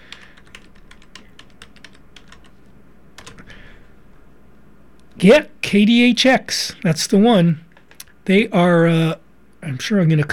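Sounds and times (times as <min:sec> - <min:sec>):
typing on a computer keyboard: 0:00.0 - 0:02.5, 0:03.2 - 0:03.4
faint noise: 0:00.0 - 0:10.3
speech: 0:05.2 - 0:07.6, 0:08.3 - 0:10.3.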